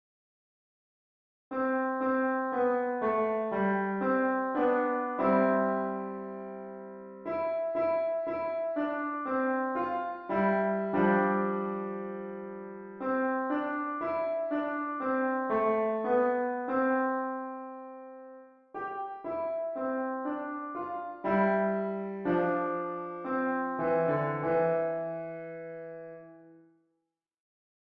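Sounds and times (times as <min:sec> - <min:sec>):
piano: 0:01.5 - 0:26.8.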